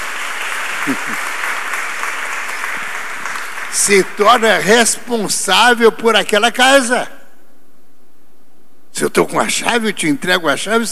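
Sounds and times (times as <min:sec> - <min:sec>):
audience applause: 0:00.0 - 0:04.5
speech: 0:00.8 - 0:01.4, 0:03.7 - 0:07.2, 0:09.0 - 0:10.9.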